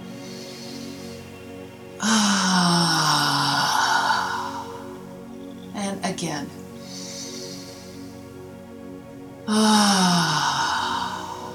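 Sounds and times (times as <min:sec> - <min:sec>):
breathing in through the nose: 0:00.0 - 0:01.4, 0:02.0 - 0:05.1, 0:06.8 - 0:08.4, 0:09.5 - 0:11.5
speech: 0:02.0 - 0:02.4, 0:06.2 - 0:06.7
breathing out through the mouth with a sigh: 0:02.0 - 0:05.0, 0:06.8 - 0:08.2, 0:09.5 - 0:11.5.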